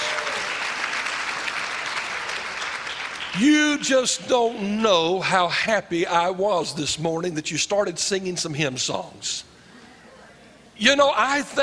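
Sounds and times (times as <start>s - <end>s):
audience clapping in praise: 0.0s - 4.6s
speech: 3.4s - 9.5s, 10.8s - 11.6s.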